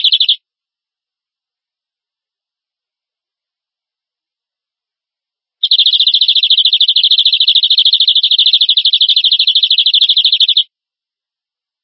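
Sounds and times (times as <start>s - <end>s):
canary rolling trill: 0.0s - 0.4s, 5.6s - 10.6s.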